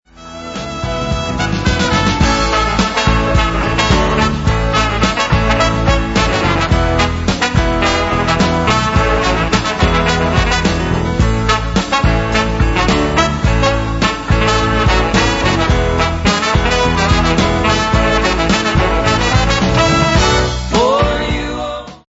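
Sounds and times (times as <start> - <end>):
horns: 0.1 - 21.6.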